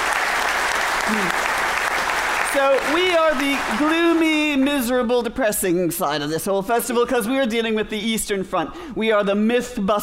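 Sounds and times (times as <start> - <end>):
audience applause: 0.0 - 4.4
speech: 1.1 - 1.5, 2.5 - 10.0.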